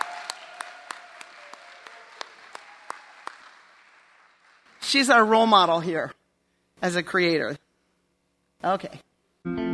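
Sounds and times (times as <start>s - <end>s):
group applauding: 0.0s - 5.2s
speech: 4.9s - 6.2s, 6.8s - 7.6s, 8.6s - 9.6s.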